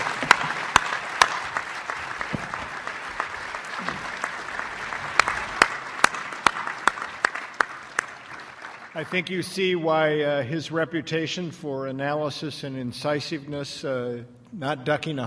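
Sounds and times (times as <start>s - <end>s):
audience applause: 0.0s - 9.8s
speech: 9.0s - 15.2s.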